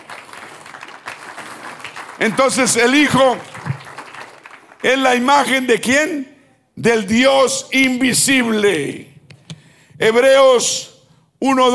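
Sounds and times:
audience applause: 0:00.0 - 0:05.1
speech: 0:02.2 - 0:03.5, 0:04.8 - 0:09.1, 0:10.0 - 0:11.7.

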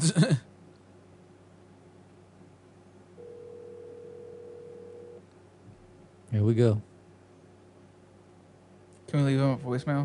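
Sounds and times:
speech: 0:00.0 - 0:00.4, 0:06.4 - 0:06.9, 0:09.1 - 0:10.0
ringback tone of an outgoing phone call: 0:03.2 - 0:05.2.

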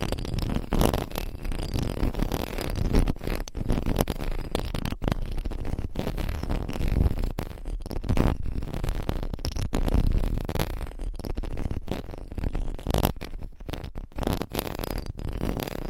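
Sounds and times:
microphones with covers scratched and rubbed: 0:00.0 - 0:15.8.

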